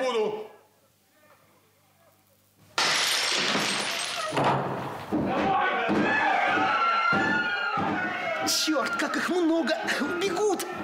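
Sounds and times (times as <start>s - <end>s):
door being smashed in: 2.8s - 5.4s
agitated voices shouting: 5.3s - 10.8s
speech: 8.7s - 10.8s.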